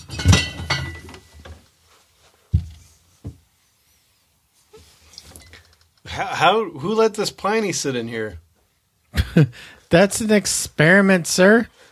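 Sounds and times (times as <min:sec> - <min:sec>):
rummaging indecisively through a fridge: 0:00.0 - 0:01.6
speech: 0:06.2 - 0:08.4, 0:09.4 - 0:11.8.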